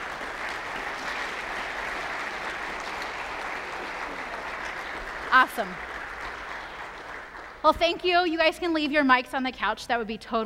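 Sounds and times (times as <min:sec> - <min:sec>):
audience applause: 0:00.0 - 0:07.7
speech: 0:05.3 - 0:05.9, 0:07.6 - 0:10.4.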